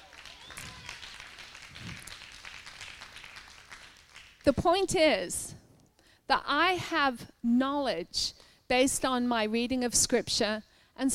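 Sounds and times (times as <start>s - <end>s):
audience clapping: 0.0s - 4.5s
speech: 4.4s - 5.5s, 6.3s - 11.1s.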